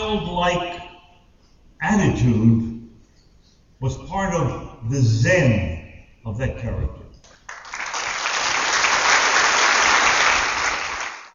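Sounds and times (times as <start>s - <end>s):
speech: 0.1s - 0.9s, 1.8s - 2.7s, 3.8s - 7.0s
audience applause: 7.5s - 11.3s.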